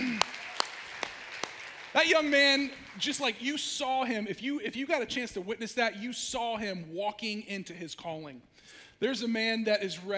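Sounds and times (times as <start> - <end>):
sparse audience hand claps: 0.0 - 2.0
speech: 2.0 - 10.1.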